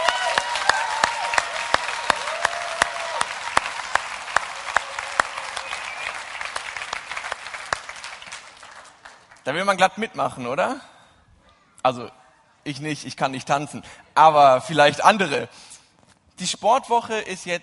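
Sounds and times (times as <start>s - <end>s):
audience clapping: 0.0s - 9.6s
speech: 9.5s - 10.9s, 11.8s - 15.7s, 16.4s - 17.6s.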